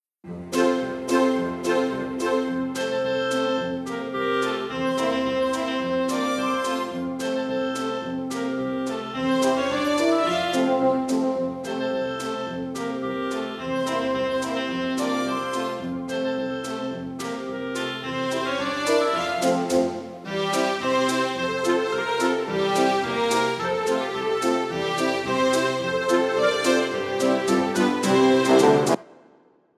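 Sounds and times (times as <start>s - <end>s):
musical accompaniment: 0.3s - 29.3s.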